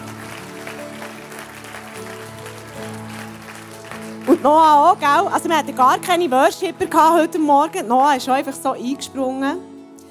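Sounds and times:
audience applause: 0.0s - 5.3s
speech: 4.3s - 9.7s.

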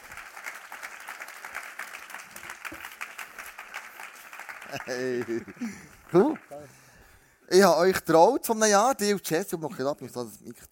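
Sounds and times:
audience applause: 0.0s - 7.0s
speech: 4.7s - 6.8s, 7.5s - 10.7s.

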